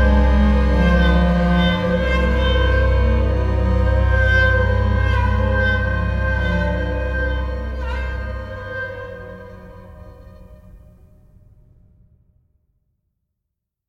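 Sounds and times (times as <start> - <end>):
background music: 0.0 - 11.1.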